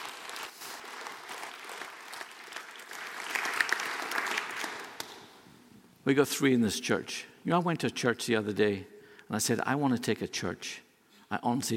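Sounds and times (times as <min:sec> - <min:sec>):
audience applause: 0:00.0 - 0:05.1
speech: 0:06.0 - 0:11.7.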